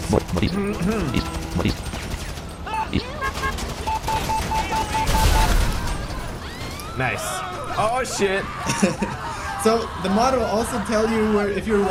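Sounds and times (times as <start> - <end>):
explosive ammo gunfire and blasts in a modded video game: 0.0 - 6.8
speech: 0.1 - 2.0, 2.9 - 3.2, 7.0 - 11.8
short beeps in a video game: 2.7 - 5.5
laughter: 7.4 - 11.8.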